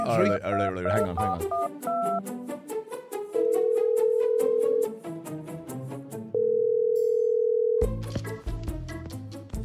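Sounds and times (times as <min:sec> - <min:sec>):
phone call ringing tone: 0:00.0 - 0:02.2, 0:03.4 - 0:04.9, 0:06.4 - 0:07.9
rhythmic music: 0:00.0 - 0:06.3, 0:07.8 - 0:09.6
speech: 0:00.1 - 0:02.6.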